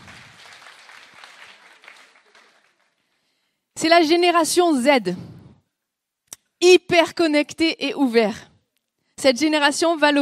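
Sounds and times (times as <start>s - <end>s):
audience applause: 0.0s - 3.0s
speech: 3.8s - 5.3s, 6.6s - 8.5s, 9.2s - 10.2s.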